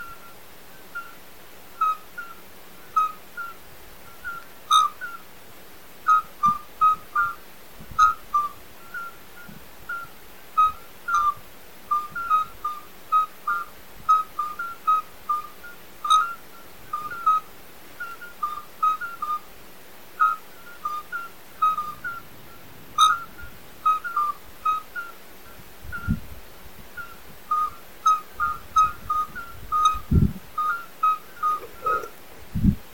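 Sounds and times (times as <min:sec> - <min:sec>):
chorus of midwife toads calling: 0:00.0 - 0:05.3, 0:06.0 - 0:19.5, 0:20.2 - 0:26.2, 0:26.9 - 0:32.2.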